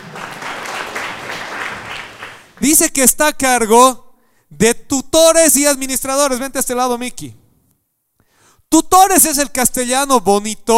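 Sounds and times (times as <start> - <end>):
church audience applause: 0.0 - 2.6
speech: 2.6 - 7.4, 8.7 - 10.7.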